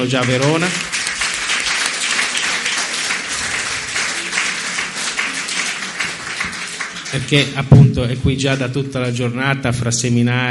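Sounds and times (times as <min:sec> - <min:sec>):
speech: 0:00.0 - 0:01.0, 0:07.1 - 0:10.4
audience applause: 0:00.0 - 0:07.6.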